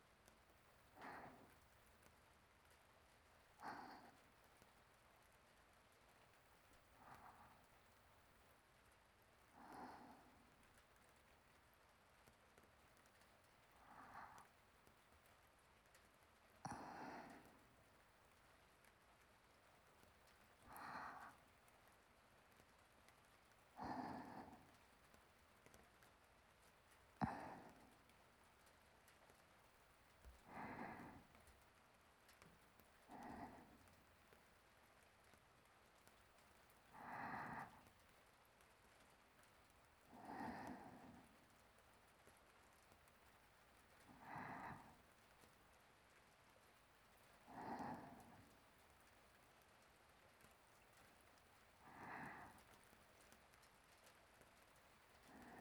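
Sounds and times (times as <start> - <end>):
sleeping breathing: 1.0 - 1.8, 3.6 - 4.4, 6.7 - 8.0, 9.5 - 11.1, 13.1 - 15.0, 16.7 - 18.0, 20.0 - 21.5, 23.7 - 25.2, 27.2 - 28.2, 30.2 - 31.6, 33.0 - 34.5, 36.8 - 38.1, 40.0 - 41.8, 44.0 - 45.6, 47.2 - 49.2, 50.8 - 53.3, 55.0 - 55.5.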